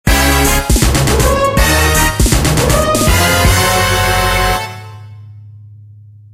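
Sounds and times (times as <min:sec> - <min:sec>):
video game team jingle: 0:00.1 - 0:05.2.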